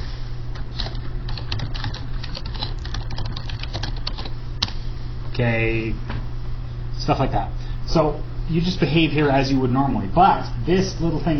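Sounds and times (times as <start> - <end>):
typing on a computer keyboard: 0.8 - 4.7
speech: 5.4 - 6.2, 7.0 - 11.3.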